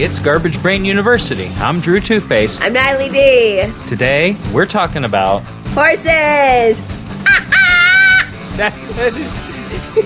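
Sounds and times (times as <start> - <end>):
speech: 0.0 - 7.4, 8.6 - 9.4
crow cawing: 7.2 - 8.4.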